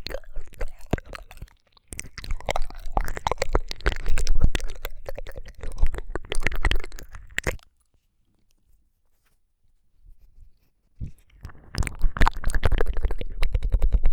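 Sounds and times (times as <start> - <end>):
ASMR ear licking sounds: 0.0 - 7.9, 11.0 - 14.1.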